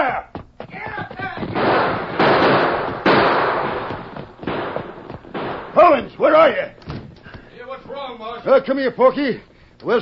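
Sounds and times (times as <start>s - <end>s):
roaring gunfire: 1.2s - 6.3s
speech: 8.2s - 10.0s.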